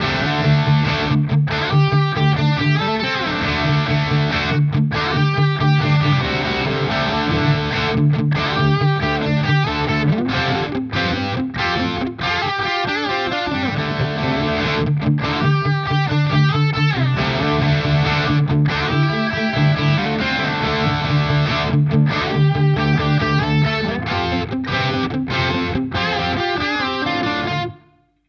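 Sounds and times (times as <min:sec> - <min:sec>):
Epiphone Prophecy Les Paul electric guitar bridge pickup: 0:00.0 - 0:28.2.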